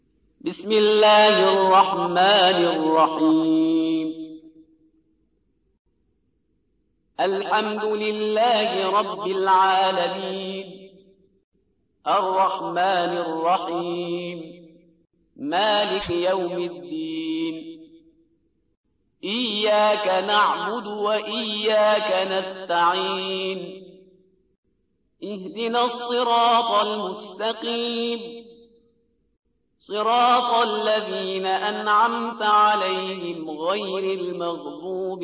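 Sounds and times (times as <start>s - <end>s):
Quran recitation: 0.4s - 4.5s, 7.2s - 10.9s, 12.1s - 14.7s, 15.4s - 17.8s, 19.2s - 24.0s, 25.2s - 28.6s, 29.8s - 35.2s.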